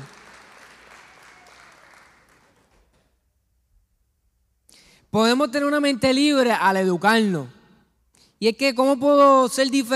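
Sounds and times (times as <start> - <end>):
audience applauding: 0.0 - 3.1
speech: 5.1 - 7.6, 8.4 - 9.9.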